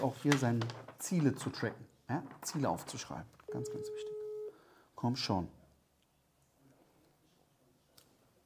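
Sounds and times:
speech: 0.0s - 4.1s, 5.0s - 5.6s
telephone ringing tone during a call: 3.5s - 4.5s.

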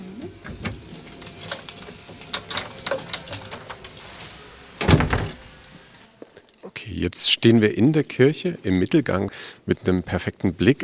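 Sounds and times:
keys jangling while a church door is unlocked: 0.4s - 4.4s
speech: 7.0s - 10.8s.

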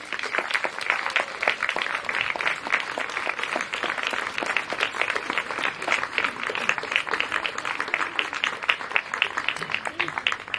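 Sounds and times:
welcome applause from audience: 0.0s - 10.5s.

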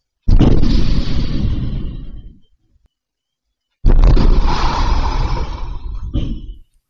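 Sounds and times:
explosions of a bank front and an ATM: 0.3s - 2.4s, 3.8s - 6.6s.

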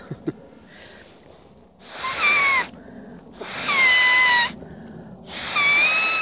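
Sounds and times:
pheasant call whistled on a blade of grass: 1.8s - 2.7s, 3.4s - 4.6s, 5.3s - 6.2s.

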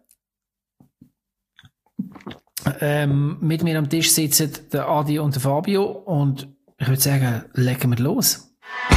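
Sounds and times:
person gulping a big sip of a drink at a table: 1.6s - 2.8s
speech: 2.8s - 8.8s.

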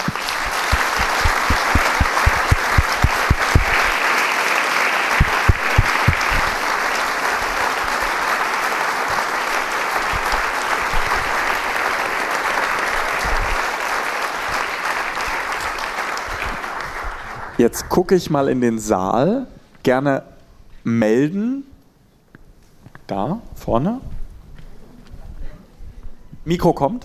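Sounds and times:
large audience applause: 0.0s - 17.8s
speech: 17.6s - 21.7s, 23.1s - 24.1s, 26.5s - 27.0s.

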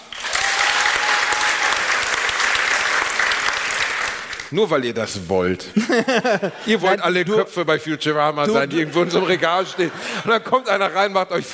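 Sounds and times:
audience clapping hands: 0.0s - 4.6s
speech: 4.5s - 11.5s
laughter: 5.7s - 7.0s, 8.4s - 10.9s.

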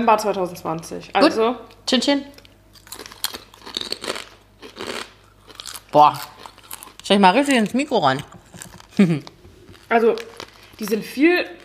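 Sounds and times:
speech: 0.0s - 2.4s, 5.9s - 6.3s, 7.1s - 8.4s, 9.0s - 9.3s, 9.9s - 11.6s
chewing crisp, hard potato chips: 2.4s - 11.6s.

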